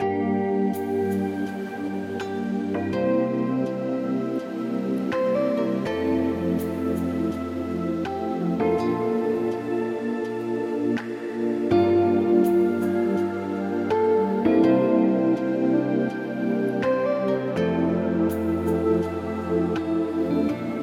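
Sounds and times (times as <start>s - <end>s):
Balearic beat music: 0.0s - 20.8s.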